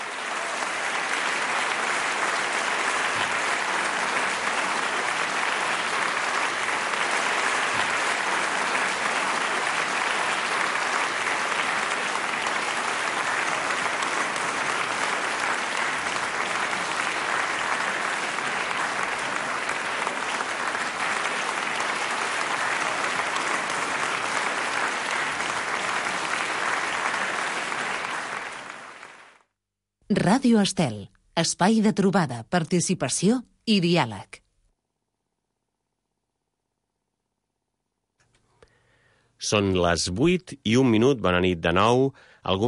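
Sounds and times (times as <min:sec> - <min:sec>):
sustained applause from a large crowd: 0:00.0 - 0:29.5
speech: 0:30.1 - 0:34.4, 0:39.5 - 0:42.6.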